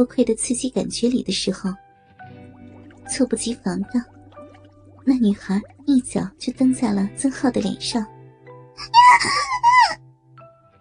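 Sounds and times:
speech: 0:00.0 - 0:01.8, 0:03.1 - 0:04.1, 0:05.0 - 0:08.2
girl screaming: 0:08.8 - 0:10.0.

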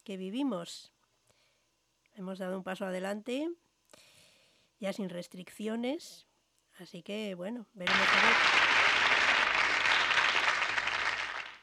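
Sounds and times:
speech: 0:00.0 - 0:01.0, 0:02.2 - 0:04.1, 0:04.8 - 0:08.6
applause: 0:07.9 - 0:11.6.

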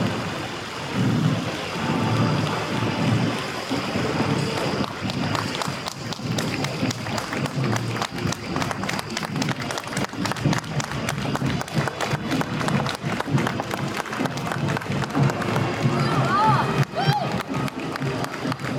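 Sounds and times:
crowd murmur at a Memorial Day parade on College Ave in Appleton: 0:00.0 - 0:18.7
quick sharp taps and claps: 0:04.6 - 0:18.7.

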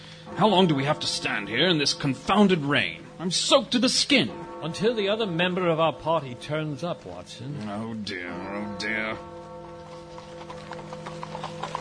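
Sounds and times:
speech: 0:00.3 - 0:09.3
horse-drawn cab hooves clip-clopping: 0:09.6 - 0:11.7.

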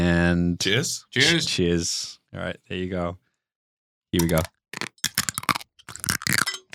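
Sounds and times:
speech: 0:00.3 - 0:03.2, 0:04.1 - 0:04.6
edible straw being chewed: 0:04.2 - 0:06.7.

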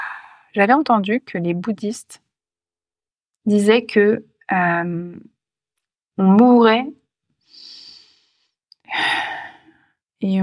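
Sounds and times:
speech: 0:00.5 - 0:02.2, 0:03.4 - 0:05.4, 0:06.2 - 0:07.8, 0:10.2 - 0:10.4
deep breath taken together: 0:07.4 - 0:10.0.

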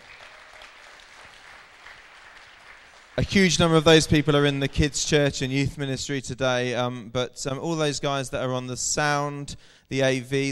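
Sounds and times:
crowd clapping: 0:00.0 - 0:05.4
speech: 0:03.2 - 0:10.5.

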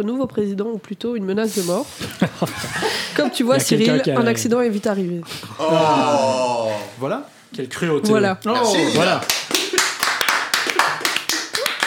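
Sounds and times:
speech: 0:00.0 - 0:09.4
applause: 0:09.0 - 0:11.8.

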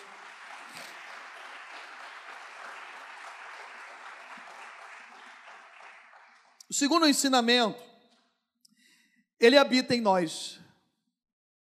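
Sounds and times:
audience applause: 0:00.0 - 0:06.6
speech: 0:06.7 - 0:07.9, 0:09.4 - 0:10.6.

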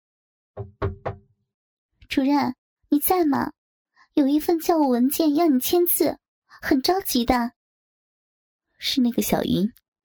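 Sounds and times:
knocking on a door: 0:00.6 - 0:01.3
speech: 0:02.1 - 0:03.6, 0:04.2 - 0:07.6, 0:08.8 - 0:09.8.

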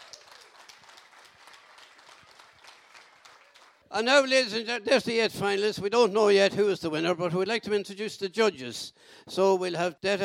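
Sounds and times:
audience applause for finalists: 0:00.0 - 0:04.0
speech: 0:03.9 - 0:10.2.

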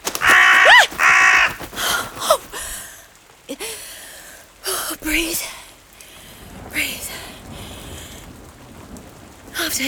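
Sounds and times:
crow cawing: 0:00.0 - 0:02.4.

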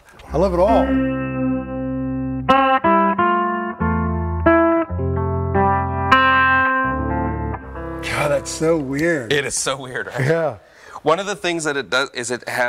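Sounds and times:
speech: 0:00.3 - 0:01.2, 0:08.4 - 0:12.6
electric guitar played through an overdrive pedal with the drive turned down: 0:00.4 - 0:09.3.

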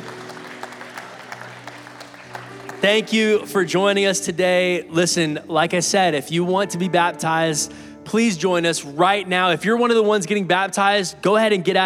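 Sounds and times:
audience applause: 0:00.0 - 0:03.6
speech: 0:02.8 - 0:11.8.

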